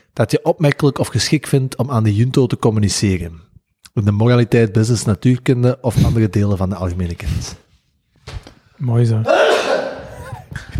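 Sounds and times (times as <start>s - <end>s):
speech: 0.2s - 7.6s, 8.8s - 9.5s
person sneezing: 9.2s - 10.7s.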